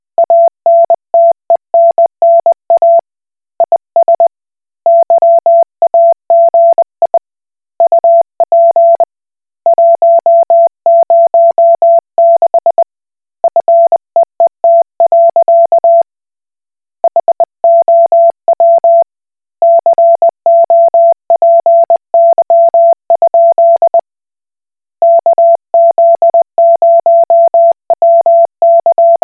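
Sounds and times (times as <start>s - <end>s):
Koch Morse code beeps: 0.2s - 3.0s, 4.9s - 7.2s, 7.8s - 9.1s, 9.7s - 12.8s, 13.6s - 16.0s, 17.1s - 19.0s, 19.6s - 24.0s, 25.0s - 29.2s.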